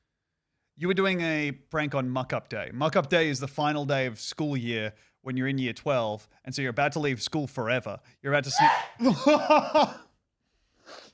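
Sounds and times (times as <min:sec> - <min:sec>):
speech: 0:00.8 - 0:10.0
sneeze: 0:08.6 - 0:09.1
laughter: 0:09.0 - 0:10.0.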